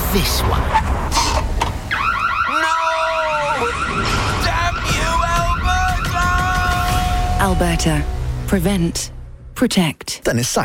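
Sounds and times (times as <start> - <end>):
speech: 0.1 - 0.8, 7.4 - 10.6
home security system alarm in Alberta going off: 1.9 - 8.2.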